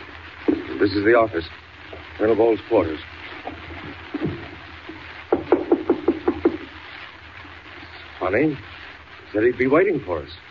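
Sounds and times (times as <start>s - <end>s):
softer dull thuds: 0.4s - 0.8s, 3.4s - 6.7s
speech: 0.8s - 1.6s, 2.2s - 3.1s, 8.3s - 8.7s, 9.3s - 10.5s
knocking on a door: 5.3s - 6.7s.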